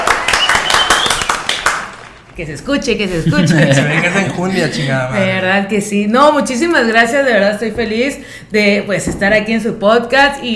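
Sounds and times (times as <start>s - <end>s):
few people hand clapping: 0.0s - 2.2s
speech: 2.4s - 10.5s
laughter: 3.1s - 5.1s.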